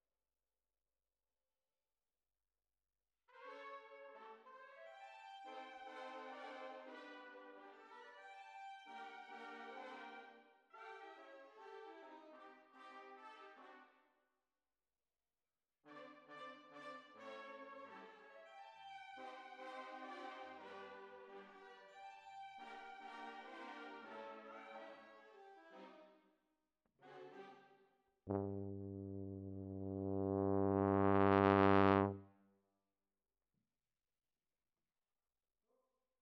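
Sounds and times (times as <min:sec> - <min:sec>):
tuba: 0:03.4 - 0:08.4, 0:09.0 - 0:13.9, 0:15.9 - 0:21.8, 0:22.6 - 0:26.0, 0:28.3 - 0:32.4.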